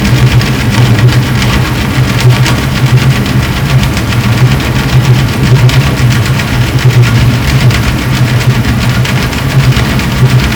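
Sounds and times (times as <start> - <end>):
Orcasound hydrophone underwater sound: 0.0 - 10.5.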